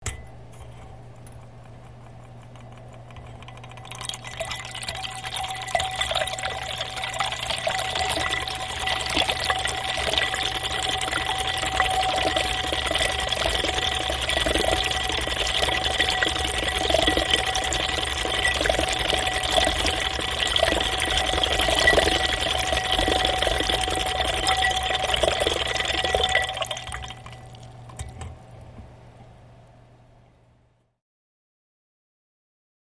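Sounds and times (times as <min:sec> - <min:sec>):
variable speed machine stirrers: 0:02.6 - 0:27.7.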